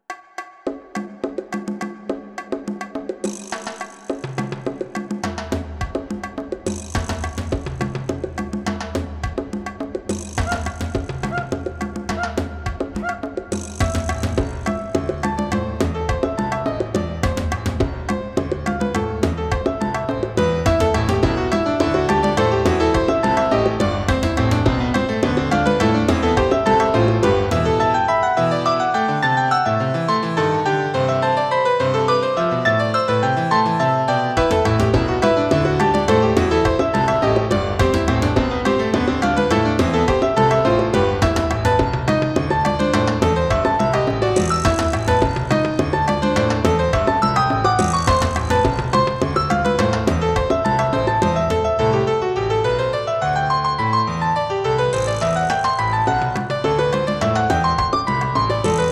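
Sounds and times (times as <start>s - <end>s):
percussion: 0.0s - 58.9s
piano: 1.0s - 58.9s.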